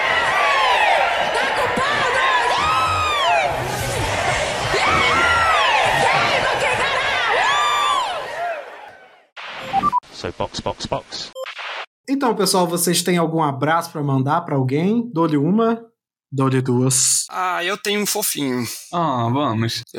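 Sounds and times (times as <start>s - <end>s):
Ceará-style crowd booing and jeering with shrill whoops: 0.0s - 9.3s
speech: 10.2s - 11.4s, 12.1s - 19.9s.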